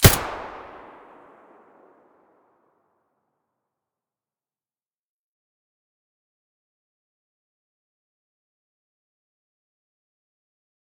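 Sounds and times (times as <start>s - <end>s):
APS muzzle blast: 0.0s - 1.6s.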